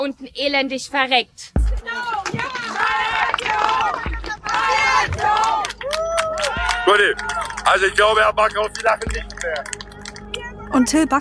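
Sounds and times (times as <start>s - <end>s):
speech: 0.0s - 4.1s, 5.0s - 9.8s, 10.7s - 11.1s
protesters shouting and chanting: 1.6s - 8.1s.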